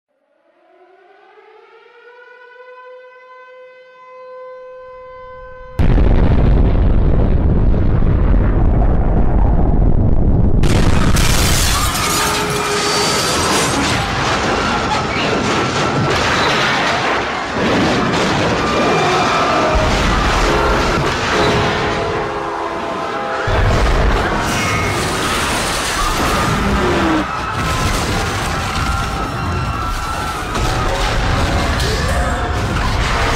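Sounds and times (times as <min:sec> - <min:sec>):
nuclear explosion in a disaster scene: 0:05.8 - 0:22.3, 0:23.5 - 0:33.3.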